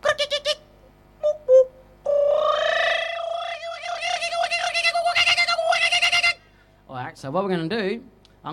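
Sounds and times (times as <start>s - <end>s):
didgeridoo played with tongue, lips and voice: 1.2s - 6.3s
speech: 7.2s - 8.5s.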